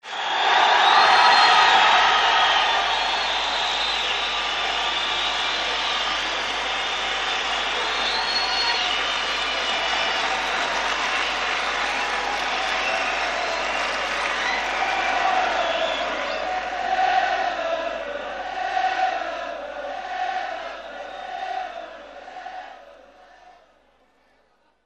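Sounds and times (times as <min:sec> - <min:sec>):
applause: 0:00.0 - 0:18.9.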